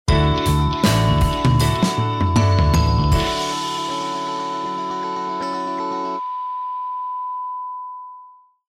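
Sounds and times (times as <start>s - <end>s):
jingle: 0.1s - 8.1s.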